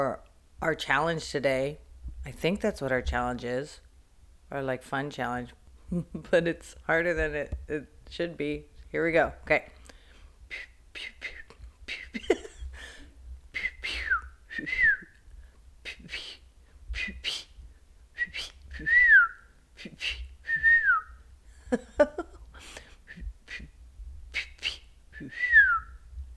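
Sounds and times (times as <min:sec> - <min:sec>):
speech: 0:00.0 - 0:03.8, 0:04.5 - 0:09.8
person whistling imitations of bird calls: 0:13.6 - 0:15.2, 0:18.2 - 0:21.2, 0:24.4 - 0:26.0.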